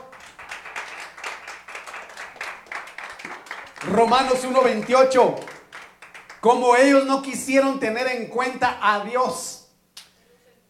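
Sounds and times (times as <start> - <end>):
audience clapping: 0.0 - 7.1
speech: 3.8 - 5.5, 6.4 - 9.5.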